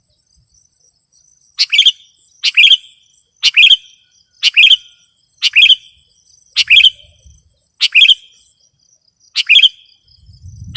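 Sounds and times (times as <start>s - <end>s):
sooty-headed bulbul singing: 0.1s - 10.7s.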